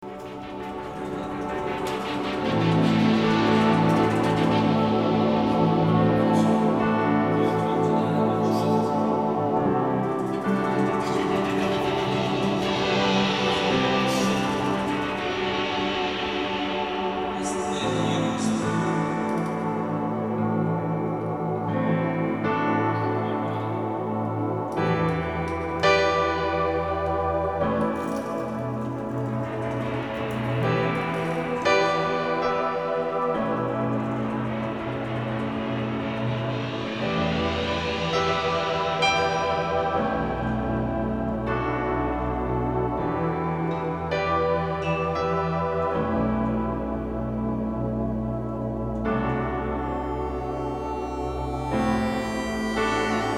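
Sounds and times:
instrumental music bridge: 0.0 - 53.3.

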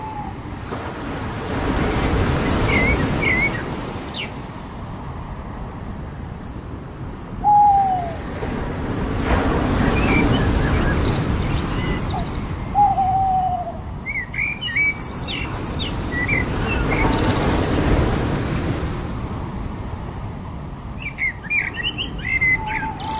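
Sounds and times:
ocean waves on the beach: 0.0 - 23.1
birds on the beach: 1.8 - 4.4, 9.6 - 17.6, 21.0 - 23.1.

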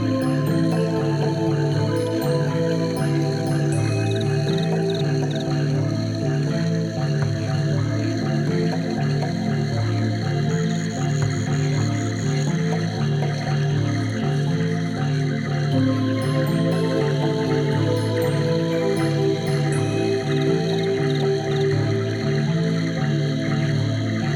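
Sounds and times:
Amazon rainforest ambience: 0.0 - 24.3.

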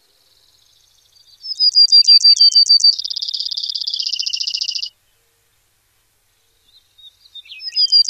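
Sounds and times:
Brewer's sparrow singing in North America: 0.0 - 5.7, 6.3 - 8.0.

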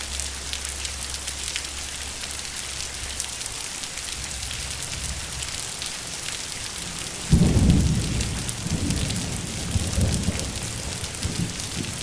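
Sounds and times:
thunderstorm rain: 4.0 - 12.0.

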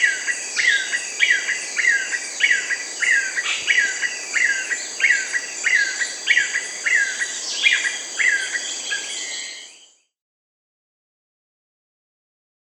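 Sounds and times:
Yellow-billed Nunbird Monasa flavirostris calling in Peru and Ecuador: 0.0 - 9.7.

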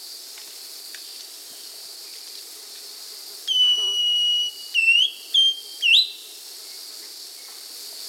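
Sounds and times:
Thrush-like schiffornis whistling song in South America: 3.5 - 6.3.

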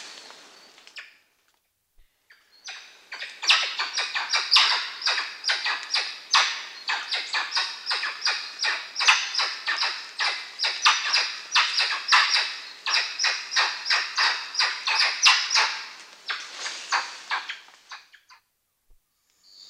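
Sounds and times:
Common woolly monkey calls: 2.6 - 18.1.

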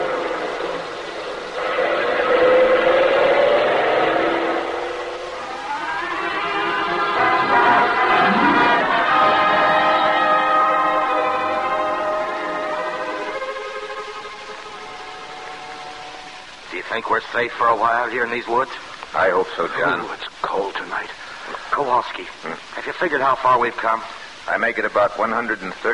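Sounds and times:
truck engine roaring at speed: 0.0 - 13.3
speech: 17.4 - 21.2, 21.8 - 25.9.

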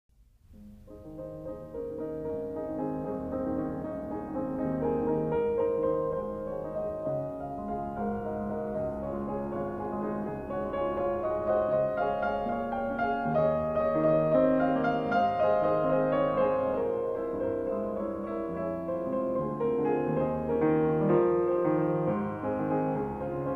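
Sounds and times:
piano etude in A flat major: 0.2 - 23.5.

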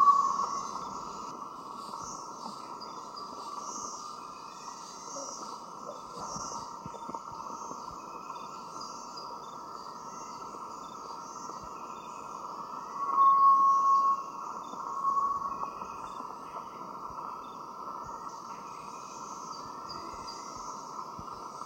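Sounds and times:
white-throated tinamou drawn-out whistle in the Eastern Lowlands of South America: 12.9 - 14.3, 14.9 - 15.8.

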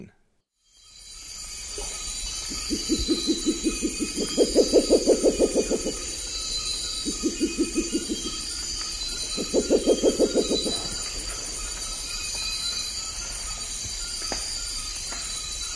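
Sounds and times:
spectacled owl giving low knocking hoots in the eastern lowlands of South America: 2.5 - 6.3, 7.0 - 8.4, 9.3 - 11.1.

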